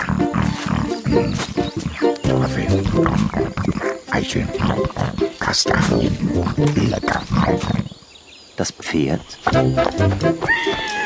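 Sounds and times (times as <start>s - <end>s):
wild boar grunting: 0.0s - 8.0s
speech: 1.1s - 1.8s, 3.4s - 7.8s, 8.6s - 11.0s.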